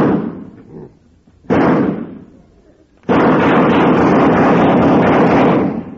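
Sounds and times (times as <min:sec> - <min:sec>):
gunshot fired at a fly on a wall: 0:00.0 - 0:00.6, 0:01.4 - 0:02.3, 0:03.0 - 0:05.9.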